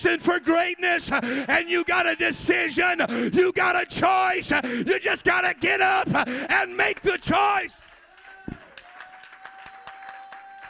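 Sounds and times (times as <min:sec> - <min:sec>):
speech: 0:00.0 - 0:07.9
audience clapping: 0:06.2 - 0:10.6.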